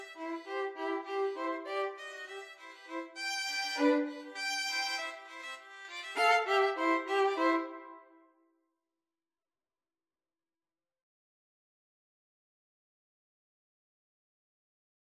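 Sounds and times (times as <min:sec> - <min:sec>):
violin: 0:00.0 - 0:08.2.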